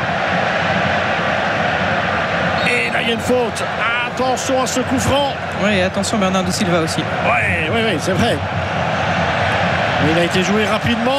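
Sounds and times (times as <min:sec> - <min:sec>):
stadium crowd roaring urging the team on: 0:00.0 - 0:11.1
speech: 0:03.1 - 0:08.7, 0:10.0 - 0:11.1.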